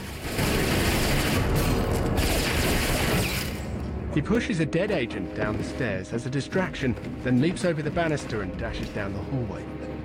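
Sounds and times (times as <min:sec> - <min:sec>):
automatic gunfire in a film shootout fired from a staircase: 0:00.0 - 0:03.6
speech: 0:04.2 - 0:09.9.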